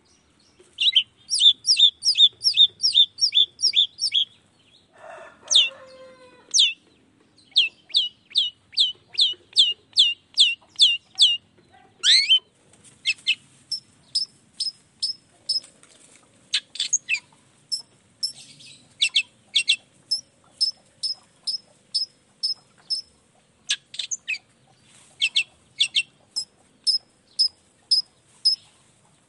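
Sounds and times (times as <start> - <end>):
long-tailed shrike singing: 0.8 - 4.3, 6.5 - 6.8, 7.5 - 11.4, 13.1 - 15.7, 16.8 - 23.1, 25.2 - 28.6.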